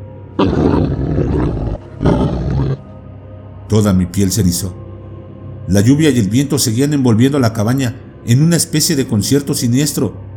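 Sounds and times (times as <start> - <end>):
creature's long growl: 0.4 - 2.8
speech: 3.7 - 4.8, 5.7 - 10.2.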